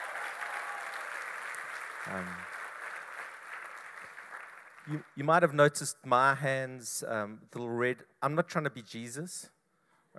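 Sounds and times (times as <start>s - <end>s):
church audience applause: 0.0s - 5.2s
speech: 2.0s - 2.6s, 4.8s - 9.6s.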